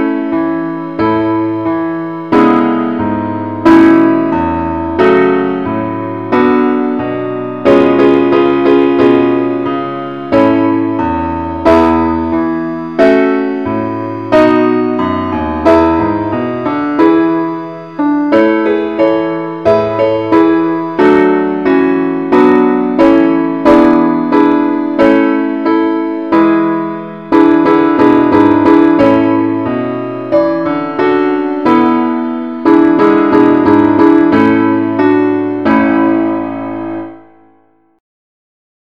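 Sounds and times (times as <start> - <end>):
keyboard playing a Welsh tune in A: 0.0 - 38.0.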